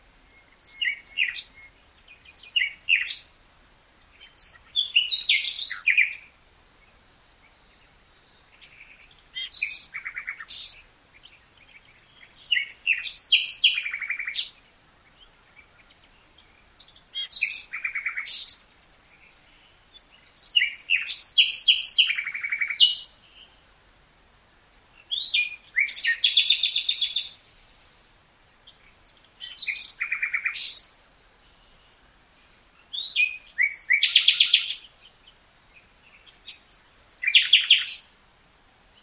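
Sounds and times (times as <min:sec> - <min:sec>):
Common nightingale song: 0:00.0 - 0:39.0.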